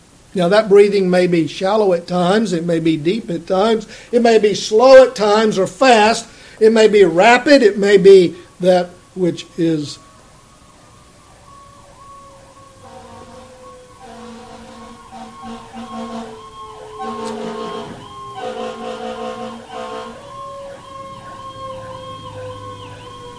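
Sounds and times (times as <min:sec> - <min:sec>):
speech: 0:00.4 - 0:10.0
passing emergency vehicle siren wailing: 0:10.0 - 0:23.3.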